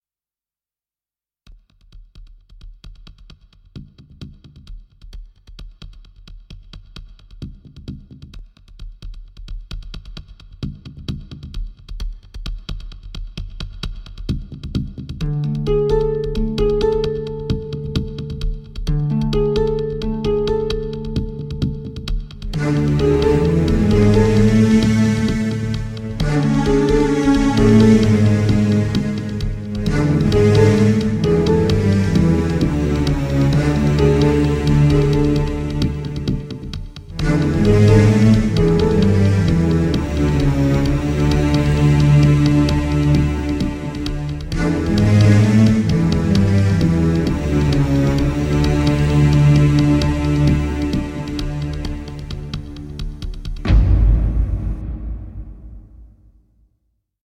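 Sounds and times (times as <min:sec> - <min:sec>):
instrumental music: 0:15.2 - 0:56.4.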